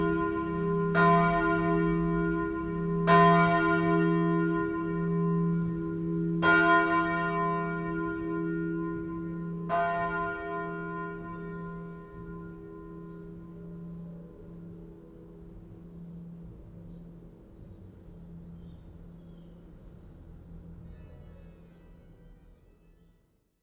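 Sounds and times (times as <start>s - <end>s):
bells ringing: 0.0s - 13.8s.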